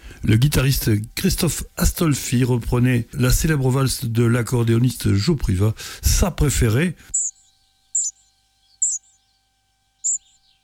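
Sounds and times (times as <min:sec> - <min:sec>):
speech: 0:00.2 - 0:07.2
spotted flycatcher song: 0:07.1 - 0:09.2, 0:10.0 - 0:10.5.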